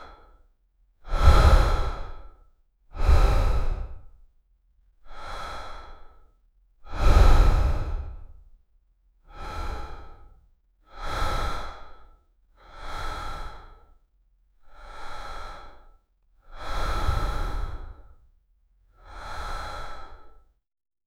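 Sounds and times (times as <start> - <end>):
soft regular breathing: 0.0 - 0.4, 1.0 - 4.2, 5.1 - 8.5, 9.3 - 14.0, 14.7 - 18.2, 19.0 - 20.5.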